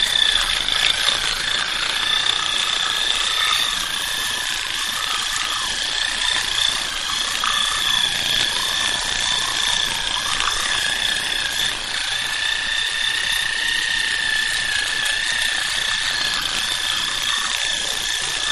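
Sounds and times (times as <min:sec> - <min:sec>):
electric toothbrush brushing teeth: 0:00.0 - 0:18.4.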